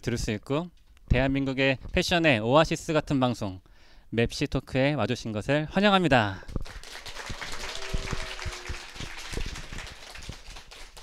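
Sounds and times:
speech: 0.0 - 6.9
applause: 6.5 - 11.0.

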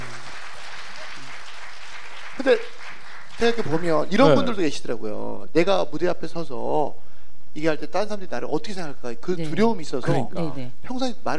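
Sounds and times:
audience applause: 0.0 - 4.1
speech: 2.4 - 2.8, 3.4 - 7.0, 7.6 - 11.3.

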